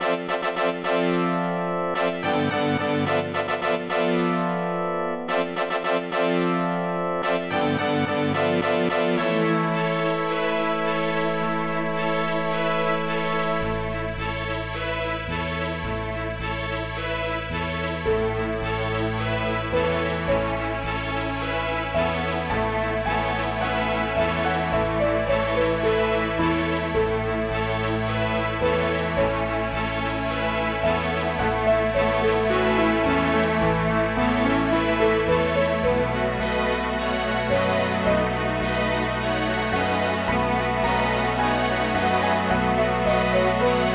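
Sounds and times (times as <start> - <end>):
tune: 0.0 - 43.9.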